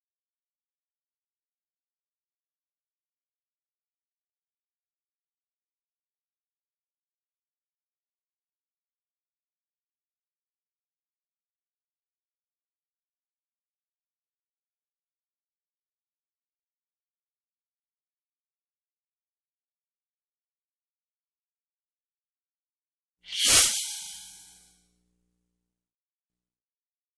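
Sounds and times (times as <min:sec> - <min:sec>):
damage sound effect: 0:23.3 - 0:24.4.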